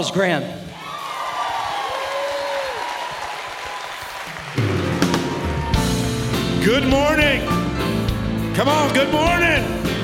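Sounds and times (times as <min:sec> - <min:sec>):
speech: 0:00.0 - 0:00.7, 0:06.6 - 0:07.7, 0:08.6 - 0:10.0
scattered cheers: 0:00.7 - 0:06.1
audience applause: 0:00.8 - 0:06.3.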